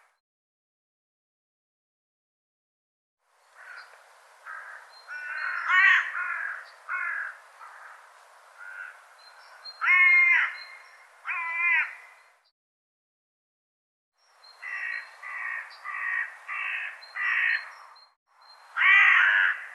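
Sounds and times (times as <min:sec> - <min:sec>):
bird calling with rough grating caws: 0:03.6 - 0:09.0, 0:09.7 - 0:12.3, 0:14.6 - 0:17.8, 0:18.8 - 0:19.7.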